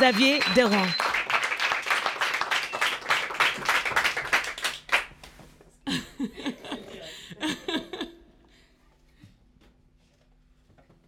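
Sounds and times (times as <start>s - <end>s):
speech: 0.0s - 1.0s
studio audience applause: 0.0s - 5.2s
laughter: 5.9s - 8.5s.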